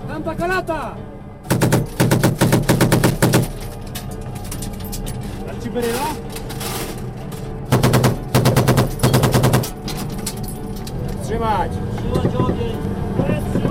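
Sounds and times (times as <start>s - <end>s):
rumbling engine: 1.4s - 13.6s
machine gun fire: 1.5s - 3.5s, 7.7s - 9.8s.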